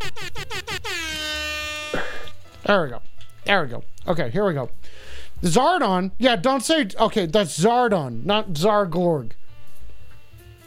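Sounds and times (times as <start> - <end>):
air horn sound effect blasts: 0.0 - 2.6
speech: 2.7 - 9.4.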